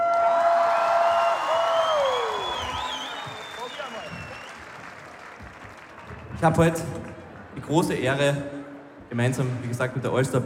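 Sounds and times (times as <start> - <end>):
audience applause: 0.0 - 8.3
speech: 6.4 - 7.0, 7.6 - 10.4.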